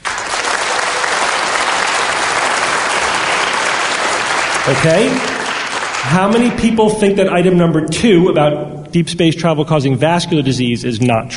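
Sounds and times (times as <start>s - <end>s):
crowd applauding: 0.0s - 6.8s
speech: 4.7s - 5.3s, 6.0s - 11.3s.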